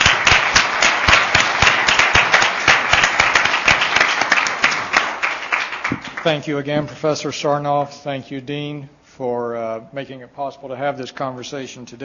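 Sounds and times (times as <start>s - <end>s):
audience applause: 0.0s - 6.5s
speech: 6.2s - 12.0s.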